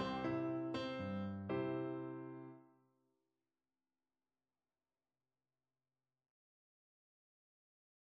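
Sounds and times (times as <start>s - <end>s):
person singing: 0.0s - 0.9s
piano: 0.0s - 2.6s.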